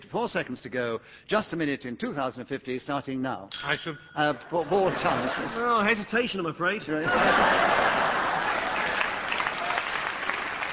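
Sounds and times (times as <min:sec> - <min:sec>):
speech: 0:00.1 - 0:08.2
laughter: 0:04.5 - 0:05.9, 0:07.0 - 0:09.2
audience applause: 0:07.1 - 0:10.7.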